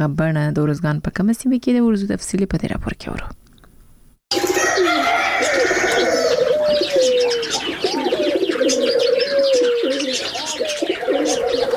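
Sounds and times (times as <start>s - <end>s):
speech: 0.0s - 3.4s
birds chirping at a bird zoo near Tarinkot in Uruzgan province: 4.3s - 11.7s
doves cooing at a bird zoo near Tarinkot in Uruzgan province: 4.3s - 11.7s.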